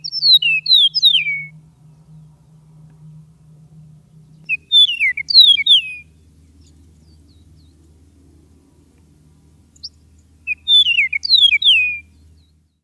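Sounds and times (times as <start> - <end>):
Eastern Meadowlark singing: 0.0 - 2.6, 4.1 - 7.9, 9.6 - 12.8.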